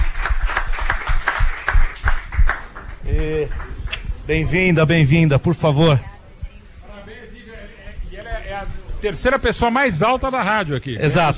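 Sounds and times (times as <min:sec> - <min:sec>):
clapping in the studio: 0:00.0 - 0:04.1
speech: 0:04.3 - 0:06.1, 0:09.0 - 0:11.3.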